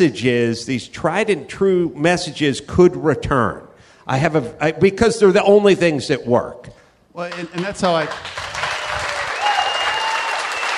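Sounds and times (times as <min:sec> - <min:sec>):
speech: 0:00.0 - 0:08.4
people clapping: 0:07.2 - 0:10.7.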